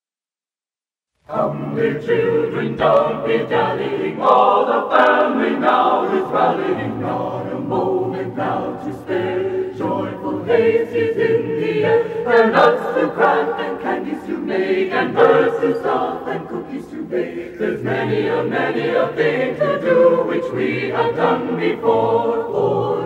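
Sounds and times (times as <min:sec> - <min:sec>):
a cappella chorale singing: 0:01.3 - 0:23.0.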